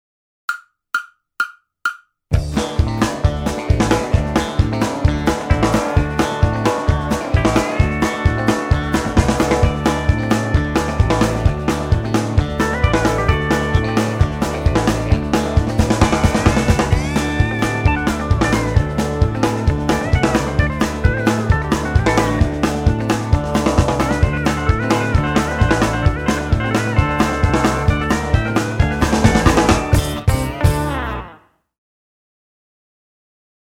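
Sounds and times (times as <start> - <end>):
hoedown music: 0.5 - 31.4.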